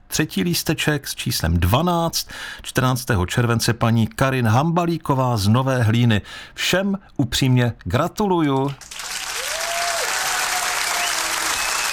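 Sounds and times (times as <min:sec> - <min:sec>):
speech: 0:00.2 - 0:09.0
applause for the winners: 0:08.6 - 0:11.9.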